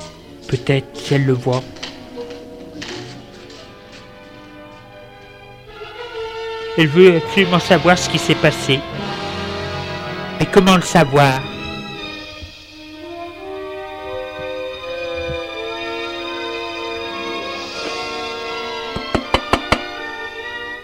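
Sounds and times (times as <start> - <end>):
speech: 0.5 - 1.8, 6.8 - 9.1, 10.4 - 11.5
knocking on a door: 19.0 - 20.0.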